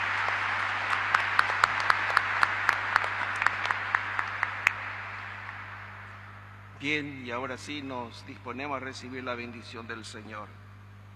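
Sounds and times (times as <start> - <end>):
audience applause: 0.0 - 6.1
speech: 6.8 - 10.6.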